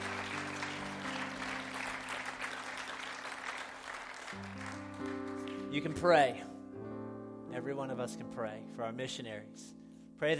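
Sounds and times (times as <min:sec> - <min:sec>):
round of applause: 0:00.0 - 0:06.0
speech: 0:05.7 - 0:06.5, 0:07.6 - 0:10.3.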